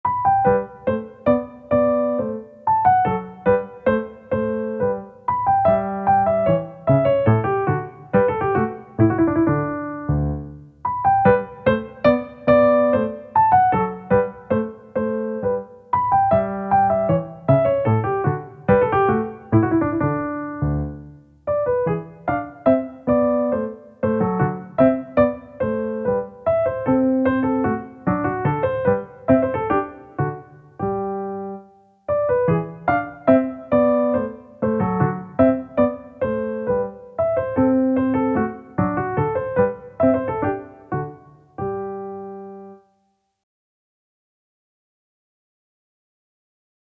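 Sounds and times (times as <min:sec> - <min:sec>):
piano minuet in G major: 0:00.0 - 0:43.1.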